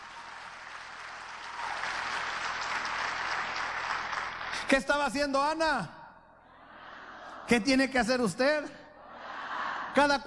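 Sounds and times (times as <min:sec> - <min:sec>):
crowd clapping: 0:00.0 - 0:04.8
speech: 0:04.7 - 0:06.0, 0:07.5 - 0:08.8, 0:10.0 - 0:10.2.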